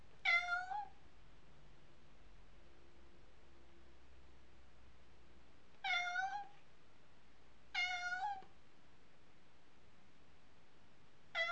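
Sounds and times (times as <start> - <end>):
cat meowing: 0.2 - 1.0, 5.8 - 6.6, 7.8 - 8.5, 11.3 - 11.5.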